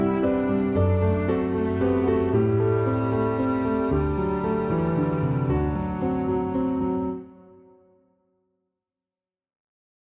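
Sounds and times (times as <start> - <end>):
viola: 0.0 - 7.9
piano: 0.0 - 8.3.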